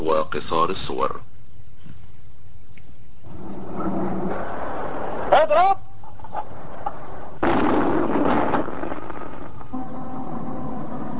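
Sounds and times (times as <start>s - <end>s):
low steady hiss: 0.0s - 11.1s
speech: 0.1s - 1.3s, 5.3s - 5.8s
iftar cannon firing at sunset in Alexandria: 4.1s - 5.3s, 6.3s - 11.1s.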